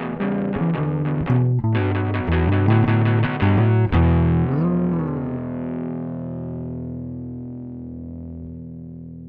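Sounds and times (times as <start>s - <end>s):
heavy blues music: 0.0s - 7.2s.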